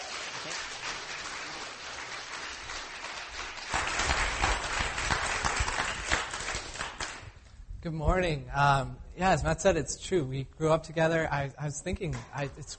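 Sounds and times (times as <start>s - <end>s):
church congregation applauding to welcome a guest speaker before a sermon: 0.0s - 7.4s
speech: 7.8s - 12.7s.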